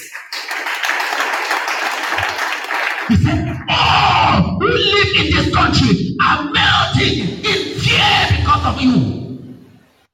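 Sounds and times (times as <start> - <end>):
crowd clapping: 0.0 - 3.1
speech: 3.1 - 7.5, 8.6 - 9.2.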